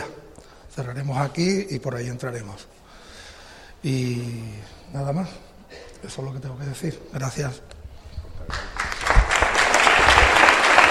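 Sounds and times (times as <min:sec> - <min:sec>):
speech: 0:00.8 - 0:02.8, 0:03.8 - 0:07.7
applause from brotherhood members: 0:08.5 - 0:10.8.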